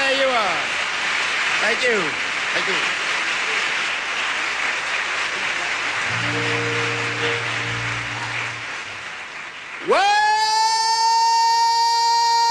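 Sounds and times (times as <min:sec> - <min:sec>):
audience applause: 0:00.0 - 0:12.5
speech: 0:01.6 - 0:03.0
low sustained musical tone: 0:06.1 - 0:09.0.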